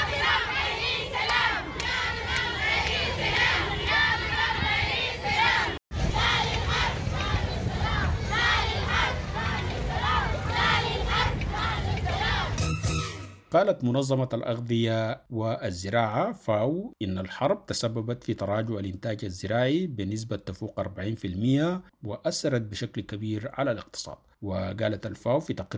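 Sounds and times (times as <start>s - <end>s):
crowd of women chanting slogans at a peace march in Nyala, Sudan: 0.0s - 12.6s
speech: 13.6s - 25.7s.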